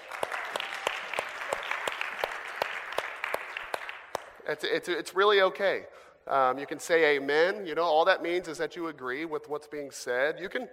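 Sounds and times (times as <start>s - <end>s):
audience applause: 0.0s - 4.4s
speech: 4.5s - 10.7s.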